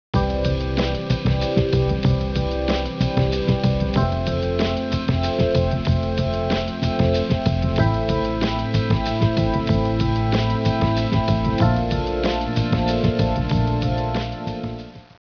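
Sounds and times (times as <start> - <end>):
music: 0.2 - 15.2.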